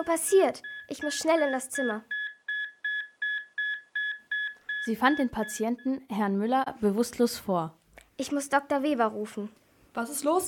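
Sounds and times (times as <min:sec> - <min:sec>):
speech: 0:00.0 - 0:02.2, 0:04.8 - 0:10.4
repeating electronic alarm beeping: 0:00.0 - 0:06.0.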